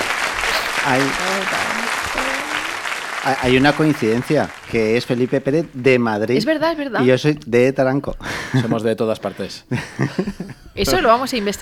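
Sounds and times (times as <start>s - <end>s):
audience applause: 0.0s - 5.8s
speech: 0.8s - 2.3s, 3.2s - 11.6s.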